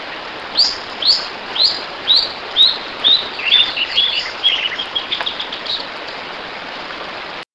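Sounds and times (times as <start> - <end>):
bird calling: 0.6 - 6.2.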